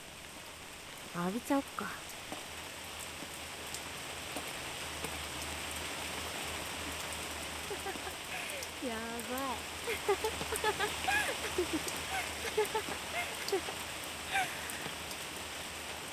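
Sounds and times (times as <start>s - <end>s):
rain pouring down outdoors: 0.0s - 16.1s
speech: 1.1s - 2.1s, 8.8s - 14.8s
laughter: 7.6s - 8.8s, 9.9s - 14.9s
person exclaiming: 8.3s - 13.6s.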